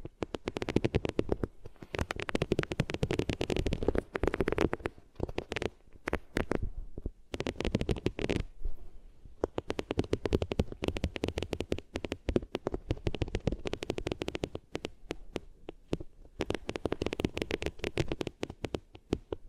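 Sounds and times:
rubbing on ears with different materials: 0:00.0 - 0:19.4.

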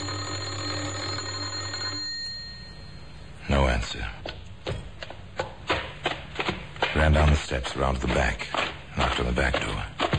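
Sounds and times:
electric doorbell ringing: 0:00.0 - 0:03.1
speech: 0:03.8 - 0:04.3, 0:07.0 - 0:10.0.

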